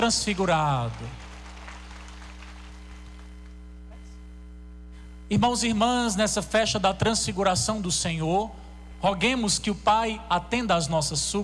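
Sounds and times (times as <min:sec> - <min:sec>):
speech: 0:00.0 - 0:01.2, 0:05.3 - 0:11.4
audience applause: 0:00.0 - 0:03.6.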